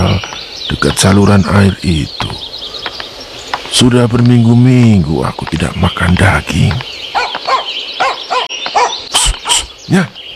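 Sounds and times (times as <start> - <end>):
speech: 0.2 - 2.5, 3.7 - 7.1, 9.9 - 10.2
dog barking: 7.2 - 9.6.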